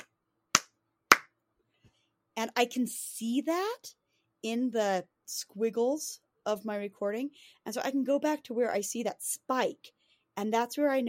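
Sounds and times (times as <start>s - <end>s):
loud hand claps: 0.0s - 1.3s
speech: 2.4s - 11.0s.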